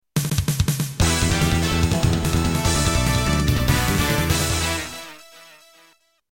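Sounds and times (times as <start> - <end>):
victory music: 1.0 - 5.9.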